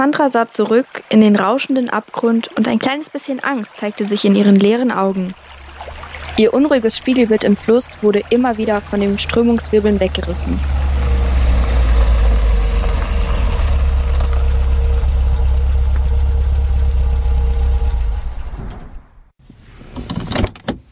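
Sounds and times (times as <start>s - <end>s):
speech: 0.0s - 5.5s, 6.4s - 10.8s
police car engine idling: 5.1s - 19.3s.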